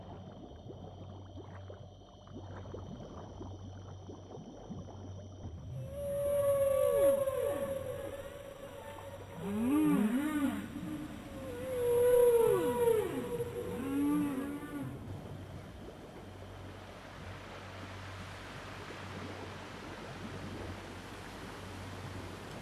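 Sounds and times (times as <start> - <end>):
whale calls in the ocean: 5.6 - 17.7.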